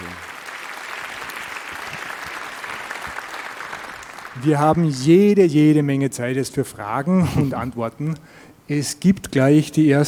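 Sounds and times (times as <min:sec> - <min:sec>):
audience clapping after a talk: 0:00.0 - 0:04.8
speech: 0:04.4 - 0:10.0.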